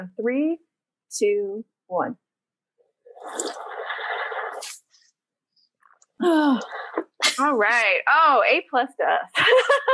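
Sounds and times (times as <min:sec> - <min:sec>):
speech: 0:00.0 - 0:02.2, 0:03.2 - 0:03.8, 0:06.2 - 0:09.9
loud slurping sip of water: 0:03.2 - 0:04.9.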